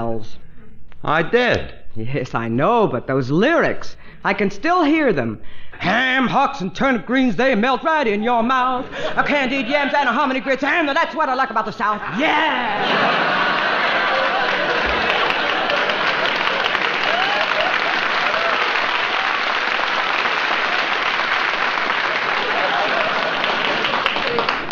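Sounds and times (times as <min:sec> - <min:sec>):
speech: 0:00.0 - 0:13.2
laughter: 0:08.8 - 0:10.5, 0:11.9 - 0:19.6, 0:21.8 - 0:24.7
audience applause: 0:12.8 - 0:24.7.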